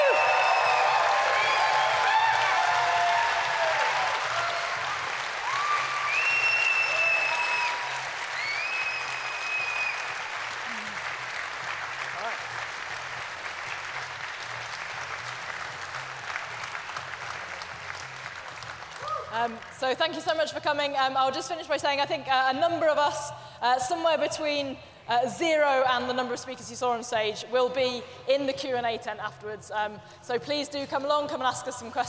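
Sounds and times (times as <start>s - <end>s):
whistles and cheers: 0.0s - 10.3s
audience applause: 0.0s - 19.7s
speech: 19.4s - 32.0s.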